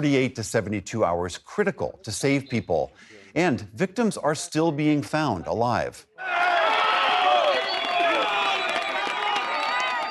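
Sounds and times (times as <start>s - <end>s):
speech: 0.0s - 6.6s
crowd cheering rescue of trapped woman: 6.2s - 10.0s
scattered clapping: 7.4s - 10.0s.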